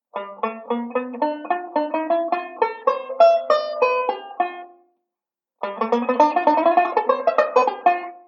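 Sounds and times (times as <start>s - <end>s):
banjo playing a ii V pattern: 0.1s - 4.9s, 5.6s - 8.2s.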